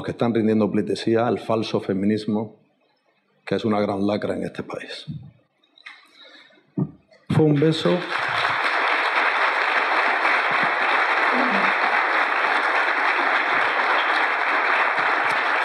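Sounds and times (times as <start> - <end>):
speech: 0.0 - 2.6, 3.5 - 5.4, 6.8 - 8.5
applause in an assembly hall: 7.3 - 15.6.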